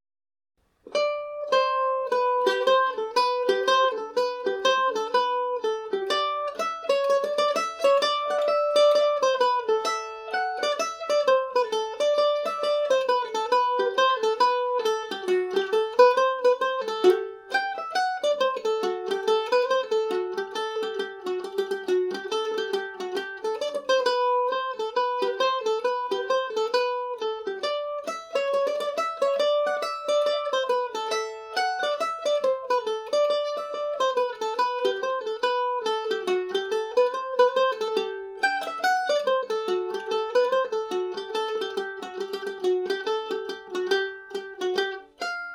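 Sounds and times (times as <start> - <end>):
mandolin tune in G major: 0.6 - 45.5.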